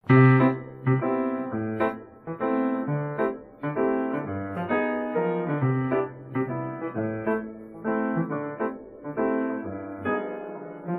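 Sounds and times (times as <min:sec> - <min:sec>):
piano: 0:00.0 - 0:10.9.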